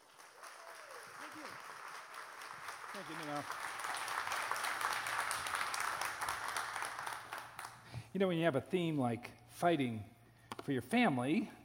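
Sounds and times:
audience applause welcoming a speaker: 0:00.0 - 0:07.9
speech: 0:03.0 - 0:03.7, 0:08.2 - 0:11.6.

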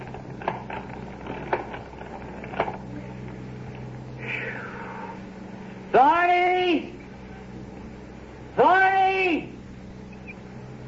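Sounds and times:
rusty creaking of hand-cranked ice cream freezer: 0:00.0 - 0:03.4
low hum: 0:00.0 - 0:10.8.

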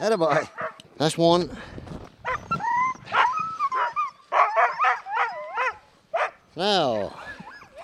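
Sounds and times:
speech: 0:00.0 - 0:01.8, 0:06.6 - 0:07.3
excited sled dog barking and yipping: 0:03.1 - 0:06.4.

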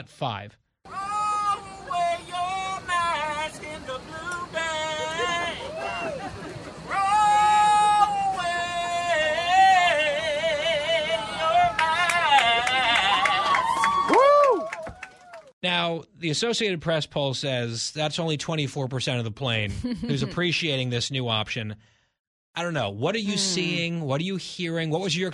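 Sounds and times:
speech: 0:00.0 - 0:01.0, 0:15.7 - 0:22.0, 0:22.6 - 0:25.3
man singing about throwing away masks: 0:00.9 - 0:06.0, 0:06.9 - 0:13.5, 0:23.2 - 0:23.9
people laughing: 0:04.6 - 0:07.0, 0:11.0 - 0:13.8, 0:19.7 - 0:20.5, 0:23.3 - 0:23.8
people clapping: 0:11.5 - 0:15.5.

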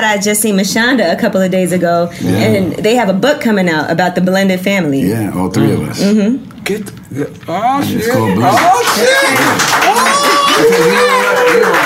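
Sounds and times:
speech: 0:00.0 - 0:11.8
audience clapping: 0:08.2 - 0:11.8
excited crowd voices and whoops: 0:08.4 - 0:11.8.

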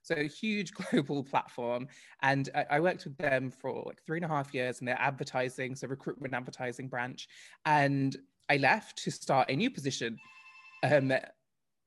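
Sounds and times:
speech: 0:00.1 - 0:11.4
bell ringing: 0:10.2 - 0:11.3.

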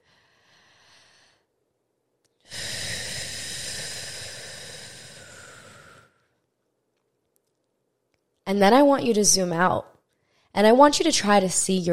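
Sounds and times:
long deep breath: 0:00.0 - 0:01.5, 0:02.4 - 0:06.4
speech: 0:08.5 - 0:09.9, 0:10.6 - 0:11.9.

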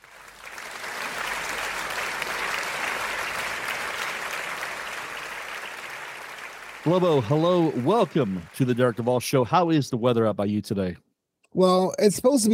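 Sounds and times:
studio audience applause welcoming a talk show guest: 0:00.0 - 0:09.8
speech: 0:06.8 - 0:11.0, 0:11.6 - 0:12.5.

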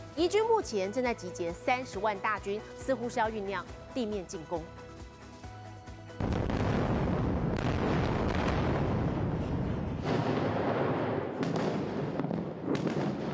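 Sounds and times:
speech: 0:00.2 - 0:04.8
heavy explosions from Israeli airstrikes on Gaza: 0:06.2 - 0:13.3.

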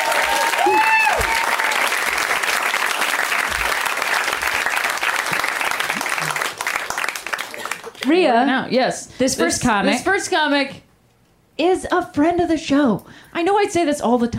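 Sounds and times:
audience applause at a comedy show: 0:00.0 - 0:08.1
speech: 0:08.1 - 0:10.8, 0:11.6 - 0:14.3.

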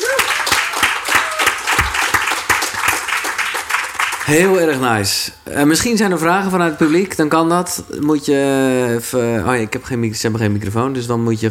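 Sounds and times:
audience applause: 0:00.0 - 0:04.8
speech: 0:04.3 - 0:11.4.

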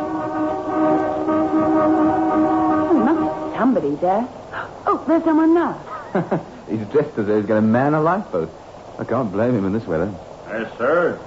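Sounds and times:
car horn blaring: 0:00.0 - 0:03.7
speech: 0:03.7 - 0:11.2.

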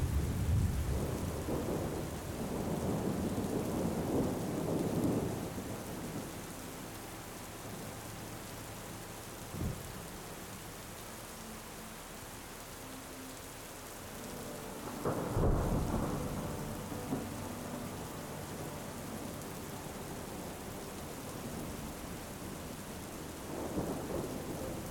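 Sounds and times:
thunder rumbles and cracks: 0:00.0 - 0:05.5, 0:14.9 - 0:17.4
gentle music with sustained tones: 0:00.0 - 0:24.9
steady rain: 0:00.0 - 0:24.9.

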